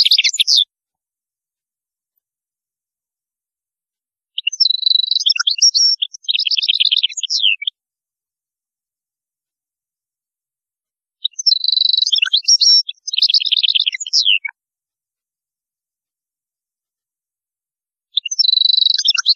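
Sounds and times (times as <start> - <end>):
European goldfinch singing: 0.0 - 0.6, 4.4 - 7.7, 11.2 - 14.5, 18.2 - 19.3.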